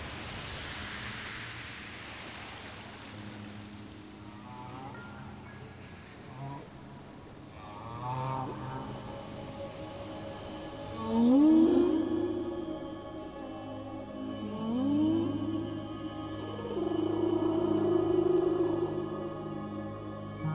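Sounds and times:
musical drone: 4.1 - 20.5
whale moaning: 7.5 - 9.3, 10.9 - 12.8, 14.4 - 19.7.

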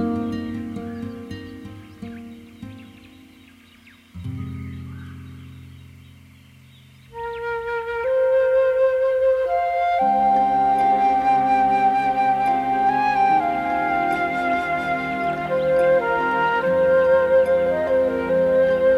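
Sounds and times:
Amazon rainforest ambience: 0.0 - 18.9.

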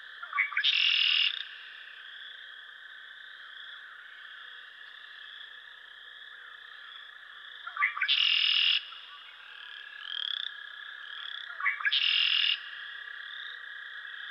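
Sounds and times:
Red-winged Blackbird calling: 0.3 - 1.2, 7.7 - 8.5, 11.5 - 12.5.

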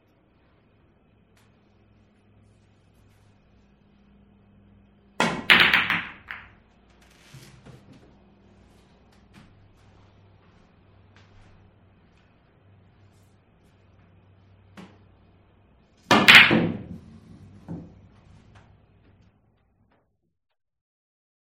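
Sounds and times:
pool game: 5.2 - 6.6.

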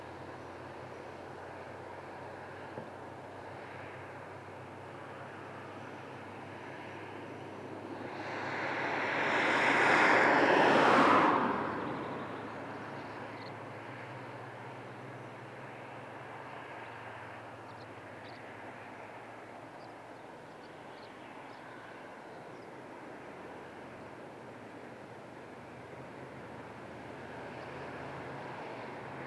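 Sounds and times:
cars passing on a distant highway: 0.1 - 29.2.

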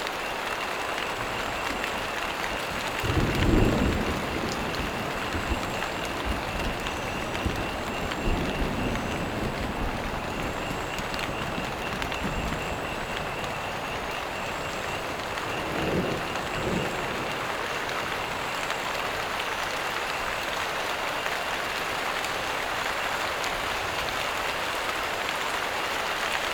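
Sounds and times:
frogs croaking: 0.0 - 26.0
crickets chirping: 0.2 - 21.5
storm approaching a marsh: 1.0 - 20.4.

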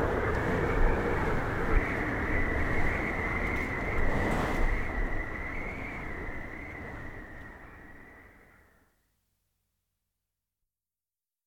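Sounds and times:
winter blizzard: 0.0 - 7.3.

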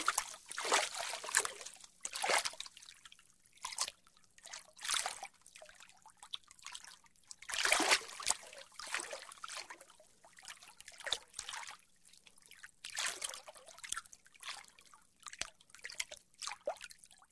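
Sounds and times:
light water lapping in a bathtub: 0.0 - 17.3.

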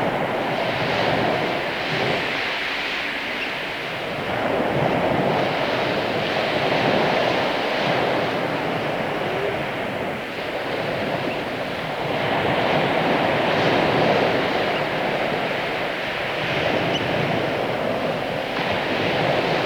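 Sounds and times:
gentle waves on the beach: 0.0 - 19.6.

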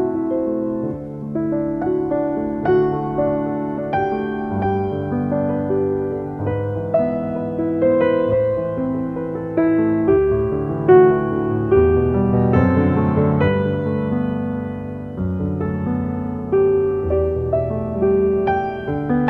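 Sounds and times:
piano piece: 0.0 - 19.2.

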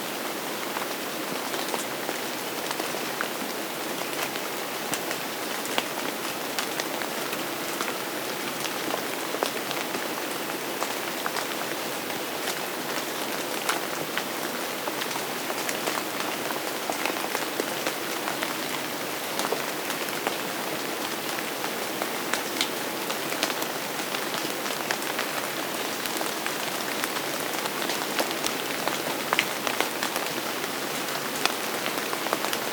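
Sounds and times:
steady rainfall: 0.0 - 32.7.

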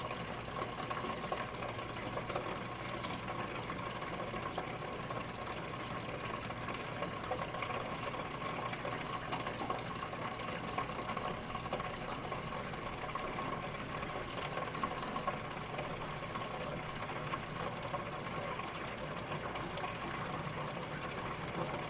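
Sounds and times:
dishwasher running a wash cycle: 0.0 - 21.8.

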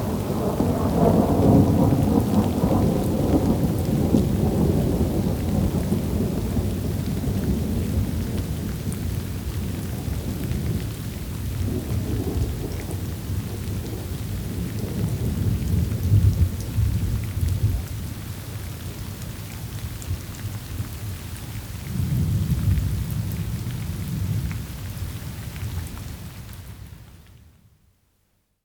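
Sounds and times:
thunder: 0.0 - 17.9
steady rain downpour: 0.0 - 28.1.

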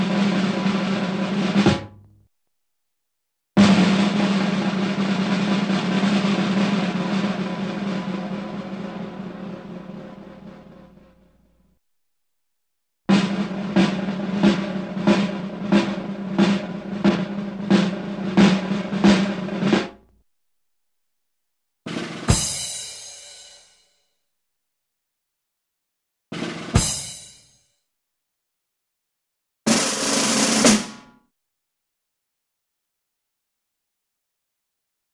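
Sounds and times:
snare drum roll: 0.0 - 2.0, 3.6 - 11.4, 13.1 - 20.0, 21.9 - 23.3, 26.4 - 27.6, 29.7 - 31.1.

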